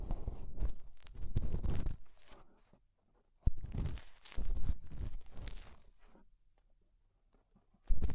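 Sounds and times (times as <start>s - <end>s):
ear cleaning with clay and rhinestones scratching, rubbing and crackling: 0.1s - 2.7s, 3.5s - 6.1s, 7.9s - 8.1s.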